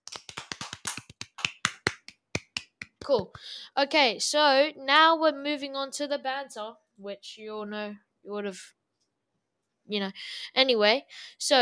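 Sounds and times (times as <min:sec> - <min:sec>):
hand claps: 0:00.0 - 0:03.5
speech: 0:03.1 - 0:08.8, 0:09.9 - 0:11.5.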